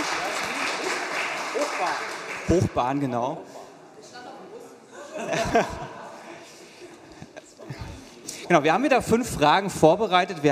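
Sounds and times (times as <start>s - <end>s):
audience applause: 0.0s - 3.0s
speech: 1.8s - 3.6s, 5.2s - 5.8s, 8.5s - 10.5s
laughter: 4.9s - 8.2s.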